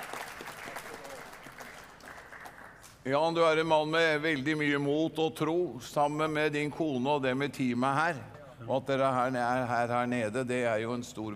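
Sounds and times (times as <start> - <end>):
audience applause: 0.0 - 2.8
speech: 3.0 - 11.3.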